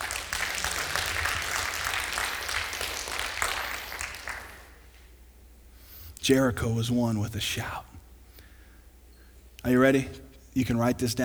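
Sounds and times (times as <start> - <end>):
applause: 0.0 - 5.1
speech: 6.3 - 7.9, 9.6 - 11.2.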